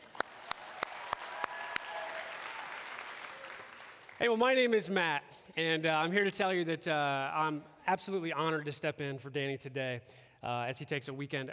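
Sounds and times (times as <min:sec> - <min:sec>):
audience clapping: 0:00.0 - 0:04.4
speech: 0:04.2 - 0:11.5.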